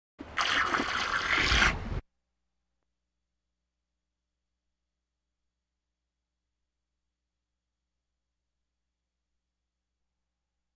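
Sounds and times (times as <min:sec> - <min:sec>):
farm animal snorts: 0:00.4 - 0:02.0.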